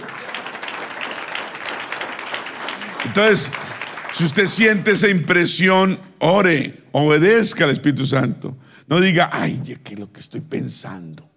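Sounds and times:
crowd applause: 0:00.0 - 0:05.0
speech: 0:03.0 - 0:03.6, 0:04.2 - 0:11.3.

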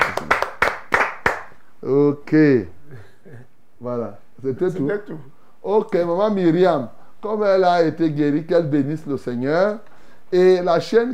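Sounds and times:
group clapping: 0:00.0 - 0:01.6
speech: 0:01.8 - 0:03.0, 0:03.8 - 0:11.1.

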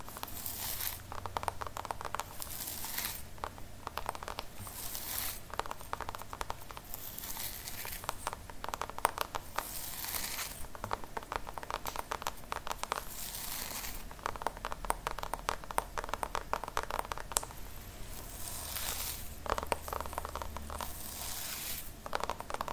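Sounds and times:
scalp massage scratching and brushing strokes: 0:00.0 - 0:01.3, 0:02.0 - 0:03.3, 0:04.5 - 0:08.4, 0:09.5 - 0:10.8, 0:11.8 - 0:14.1, 0:17.5 - 0:22.7
faint low hum: 0:00.0 - 0:22.7.

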